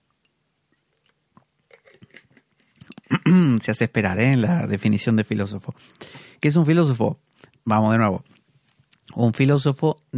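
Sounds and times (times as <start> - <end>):
person sipping water: 0.7 - 3.3
swallowing: 0.9 - 3.4
speech: 3.2 - 8.4, 9.1 - 10.1.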